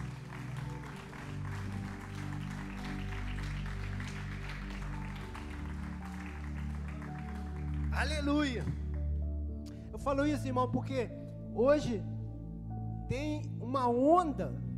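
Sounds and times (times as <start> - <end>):
audience applause: 0.0 - 8.3
speech: 8.0 - 8.8, 10.0 - 12.1, 13.1 - 14.6.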